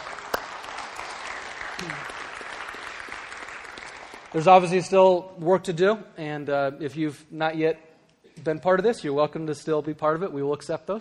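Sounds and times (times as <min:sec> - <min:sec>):
audience applause: 0:00.0 - 0:04.5
speech: 0:01.8 - 0:02.1, 0:04.3 - 0:10.9.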